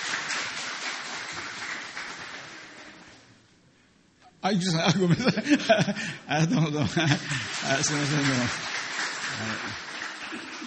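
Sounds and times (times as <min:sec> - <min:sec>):
audience applause welcoming a guest: 0:00.0 - 0:03.0, 0:06.9 - 0:10.6
speech: 0:04.4 - 0:08.7
laughter: 0:04.7 - 0:08.6.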